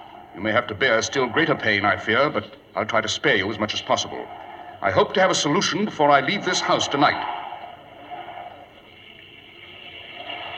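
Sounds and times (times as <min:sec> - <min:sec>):
speech: 0:00.4 - 0:07.4
rain during a thunderstorm: 0:08.8 - 0:10.5.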